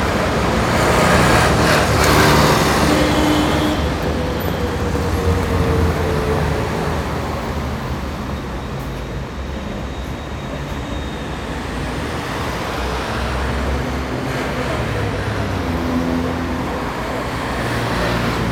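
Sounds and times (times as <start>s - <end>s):
city ambience: 0.0s - 18.4s.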